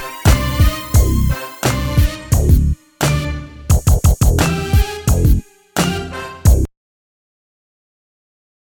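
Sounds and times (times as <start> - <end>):
music beat: 0.0 - 6.7.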